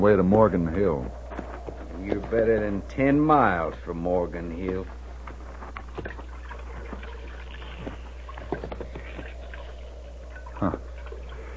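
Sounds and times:
speech: 0.0 - 1.2, 2.0 - 5.0, 6.0 - 6.2, 10.6 - 10.8
steady low hum: 0.0 - 11.5
water sloshing in a trough: 5.9 - 11.5.

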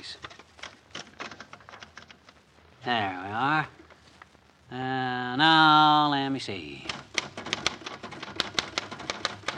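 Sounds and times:
typewriter typing a verse on a card: 0.2 - 2.3, 6.8 - 9.5
speech: 2.8 - 3.8, 4.7 - 7.1.

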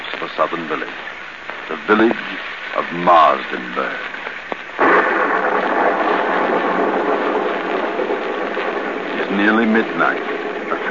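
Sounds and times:
heavy storm downpour: 0.0 - 10.8
speech: 0.2 - 4.2, 9.3 - 10.8
thunder crack: 4.8 - 10.8.

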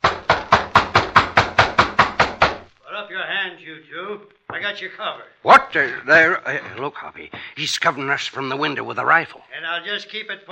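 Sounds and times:
firm knocking on a door: 0.0 - 2.7
speech: 3.7 - 10.5.

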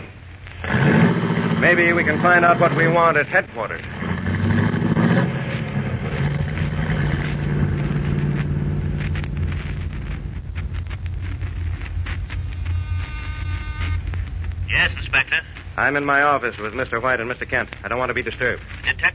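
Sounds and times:
car engine running: 0.6 - 15.5
speech: 1.6 - 4.0, 14.8 - 19.1.

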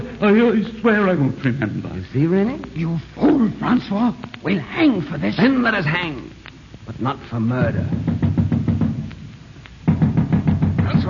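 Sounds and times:
speech: 0.2 - 8.2
knocking on a door: 7.6 - 9.1, 9.8 - 11.0.

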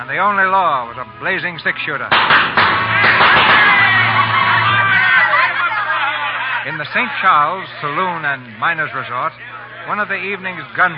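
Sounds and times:
speech: 0.0 - 4.4, 6.6 - 10.9
rowdy saloon crowd cheering and whooping: 2.2 - 10.9
people shouting: 2.5 - 8.0
people laughing: 2.9 - 8.0.

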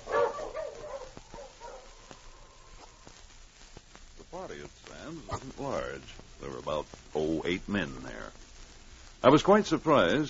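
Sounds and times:
husky dog barking: 0.0 - 2.0
speech: 5.1 - 8.4, 9.2 - 10.2.

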